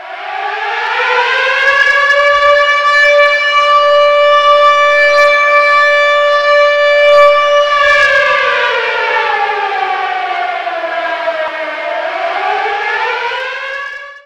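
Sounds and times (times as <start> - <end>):
alarm: 0.0 - 14.2.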